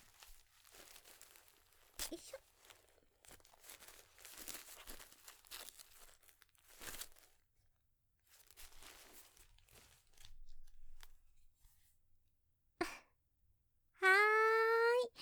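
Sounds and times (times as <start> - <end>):
disposable diaper plastic crinkling as tapes are fastened: 0.0 - 7.4, 8.3 - 11.1
speech: 2.1 - 2.5
brief high-pitched vocal sound: 14.0 - 15.2.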